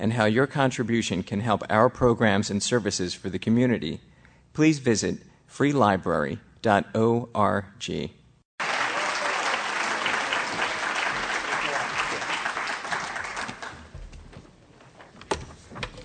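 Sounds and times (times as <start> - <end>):
speech: 0.0 - 8.2
audience applause at a library event welcoming a speaker: 8.6 - 13.9.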